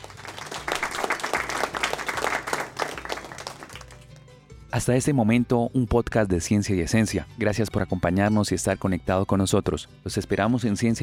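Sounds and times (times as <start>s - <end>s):
loud applause: 0.0s - 4.3s
speech: 4.8s - 11.0s.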